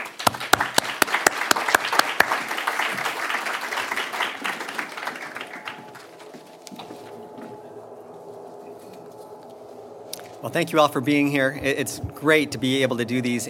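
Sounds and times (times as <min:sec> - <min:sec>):
audience applause at a lecture on religious liberty: 0:00.0 - 0:07.5
speech: 0:10.4 - 0:13.4.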